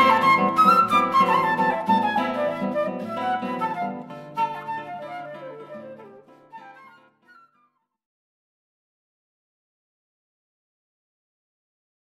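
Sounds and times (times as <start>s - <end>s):
classical guitar: 0.0s - 7.6s
flute: 0.0s - 8.0s.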